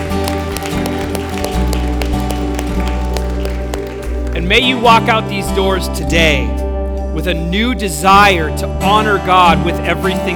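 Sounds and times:
crowd clapping in a steady, quick rhythm: 0.0s - 4.7s
speech: 4.5s - 6.6s, 7.2s - 10.3s.

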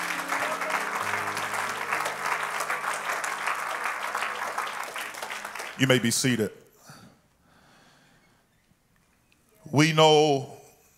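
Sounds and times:
audience clapping hands: 0.0s - 6.5s
speech: 5.8s - 6.6s, 9.8s - 10.5s.

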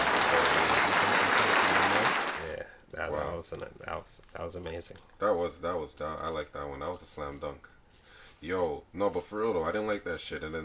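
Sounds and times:
applause: 0.0s - 2.5s
speech: 3.4s - 7.8s, 8.4s - 10.6s.

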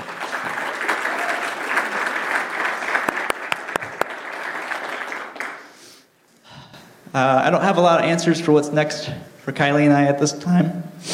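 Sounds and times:
audience applause: 0.0s - 5.8s
speech: 7.1s - 10.8s.

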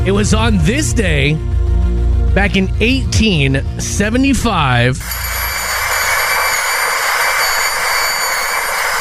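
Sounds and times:
speech: 0.1s - 1.5s, 2.4s - 5.5s
dental drill whining: 5.0s - 8.9s.

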